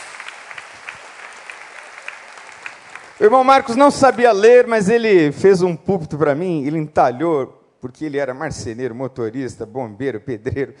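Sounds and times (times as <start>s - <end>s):
audience applause: 0.0s - 3.8s
speech: 3.2s - 10.7s.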